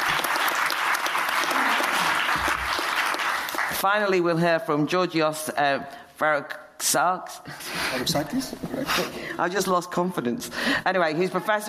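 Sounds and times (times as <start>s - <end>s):
audience applause welcoming a speaker at a public talk: 0.0s - 3.8s
speech: 3.8s - 11.6s.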